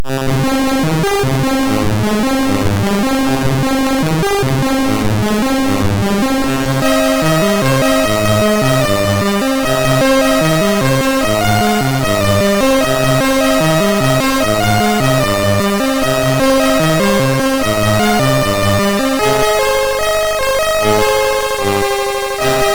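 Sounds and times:
MOS6581R3 SID chip sound: 0.1s - 22.7s.

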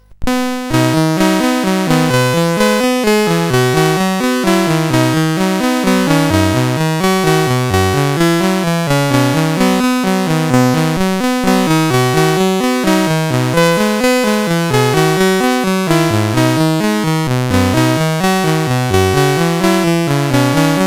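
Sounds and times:
SID CSG8580R5 chip game music: 0.0s - 20.8s.

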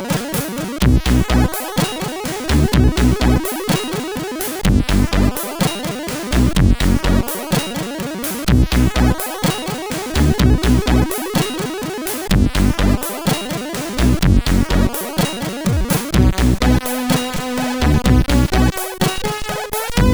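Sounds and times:
SID CSG8580 chiptune synthesizer: 0.1s - 20.1s.

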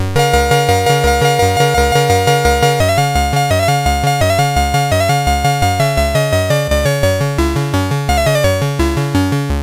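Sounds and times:
chiptune music on CSG8580R5 chip: 0.2s - 9.6s.

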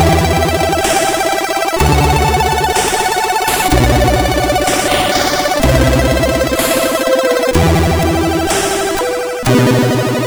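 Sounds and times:
techno music on a CSG8580R5 SID chip: 0.0s - 10.1s.

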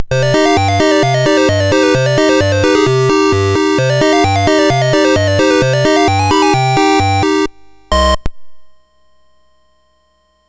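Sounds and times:
SID MOS6581R4 chiptune music: 0.0s - 8.3s.

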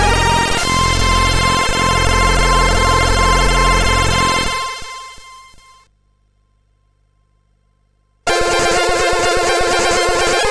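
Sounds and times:
high trance music: 0.0s - 5.3s, 8.3s - 10.4s.

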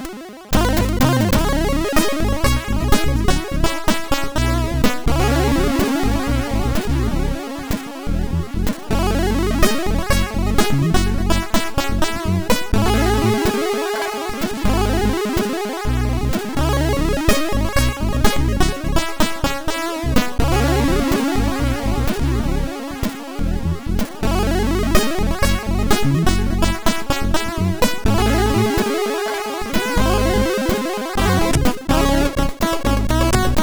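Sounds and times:
MOS6581R4 SID chip music: 0.5s - 33.6s.

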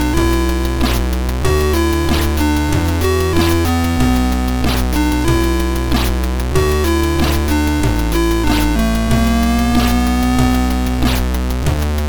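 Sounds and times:
tune on MOS6581R3 sound chip: 0.0s - 12.0s.

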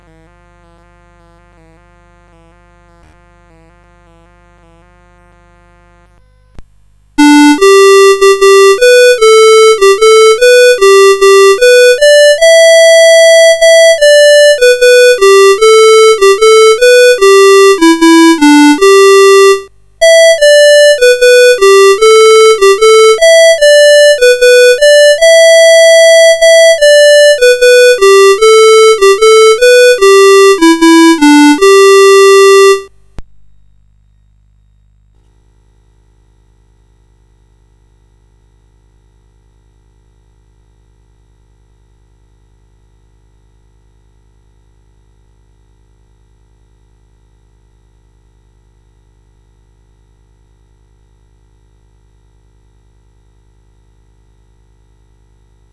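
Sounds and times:
CSG 8580R5 synthesized chip melody: 7.2s - 32.9s.

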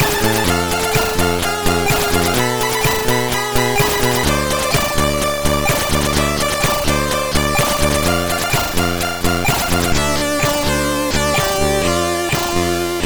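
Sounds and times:
drums intro on a MOS6581R2 sound chip: 0.0s - 13.0s.

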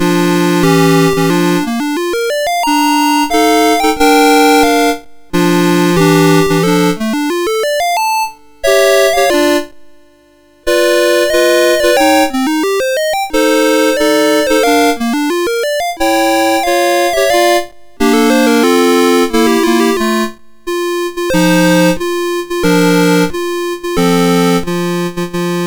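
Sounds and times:
chiptune music on MOS6581R2: 0.0s - 9.8s, 10.7s - 25.6s.

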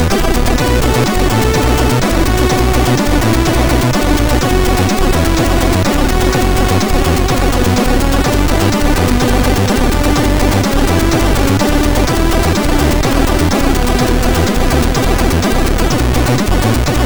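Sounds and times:
SID chip intro tune: 0.0s - 17.0s.

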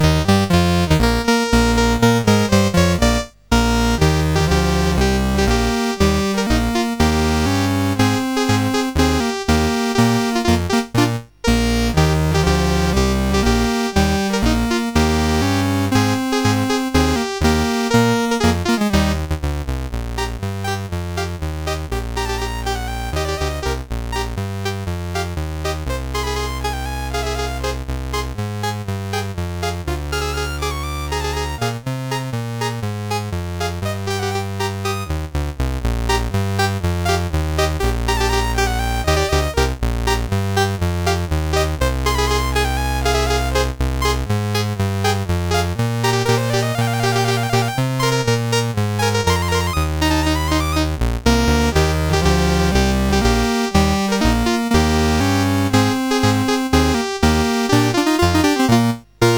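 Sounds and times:
Christmas song: 0.0s - 19.4s, 20.2s - 35.3s, 36.1s - 59.3s.

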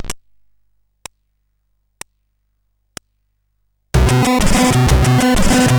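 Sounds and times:
CSG 8580 sound chip: 4.0s - 5.7s.

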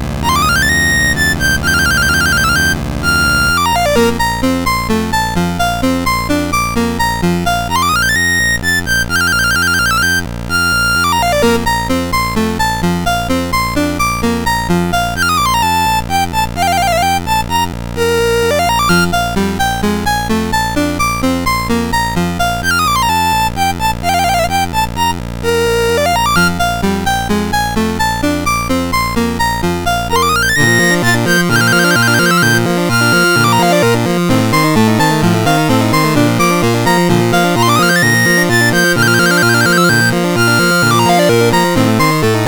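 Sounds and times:
chiptune music on MOS6581R2 sound chip: 0.2s - 42.4s.

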